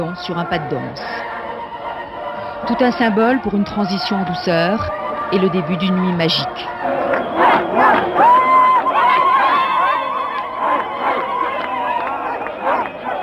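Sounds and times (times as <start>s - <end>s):
speech: 0.0s - 1.3s, 2.6s - 7.0s
large enthusiastic crowd cheering and shouting in streets: 0.0s - 13.2s
laughter: 0.0s - 13.2s
sustained wavering call: 0.0s - 13.2s
high whoops: 6.4s - 13.2s.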